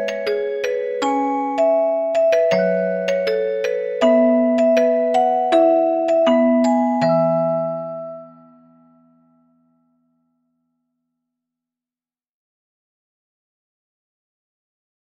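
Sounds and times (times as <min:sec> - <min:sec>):
music box: 0:00.0 - 0:09.4.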